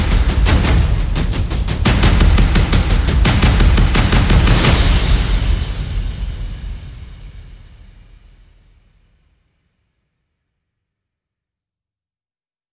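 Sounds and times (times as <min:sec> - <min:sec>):
percussion: 0:00.0 - 0:09.4.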